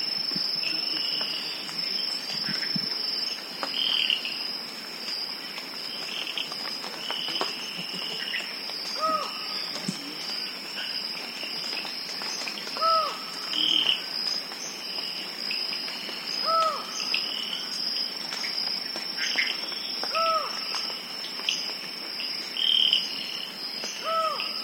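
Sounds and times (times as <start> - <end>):
insect drone: 0.0 - 24.6
collared forest falcon calling: 12.8 - 14.0, 16.4 - 17.2.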